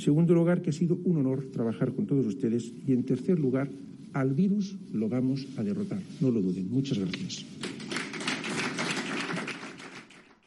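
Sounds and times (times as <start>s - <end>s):
speech: 0.0s - 7.7s
steady farewell applause from a crowd: 7.6s - 10.4s.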